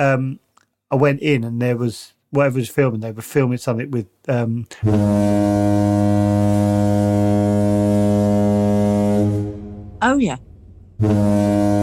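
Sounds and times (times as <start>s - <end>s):
speech: 0.0s - 6.2s, 10.0s - 11.8s
long horn blast sound effect censoring speech: 4.8s - 10.0s, 11.0s - 11.8s.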